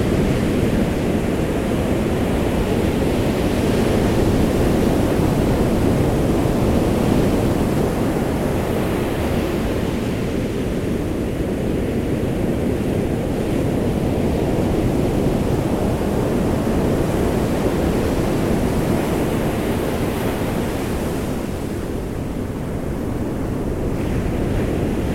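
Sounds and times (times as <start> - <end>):
waves on beach: 0.0 - 25.1.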